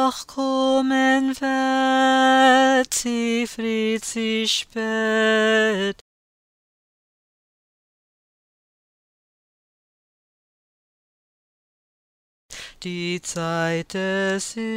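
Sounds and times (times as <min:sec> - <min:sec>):
tenor singing drill: 0:00.0 - 0:06.0, 0:12.8 - 0:14.7.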